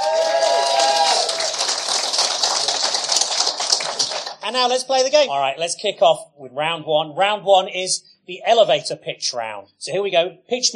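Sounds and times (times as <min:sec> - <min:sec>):
audience applause: 0:00.0 - 0:04.6
speech: 0:04.5 - 0:10.7.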